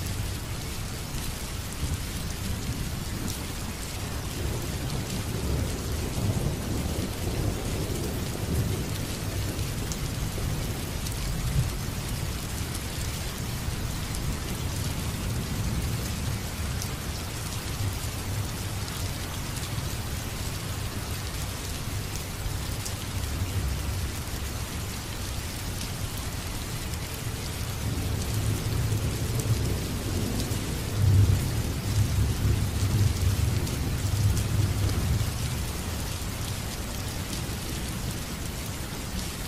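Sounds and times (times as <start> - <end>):
rain: 0.0 - 39.4.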